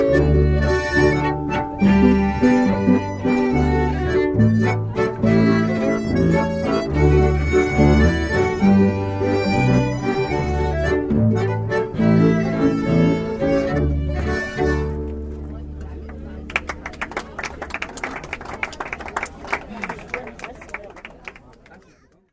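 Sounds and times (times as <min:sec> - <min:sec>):
waltz music: 0:00.0 - 0:16.8.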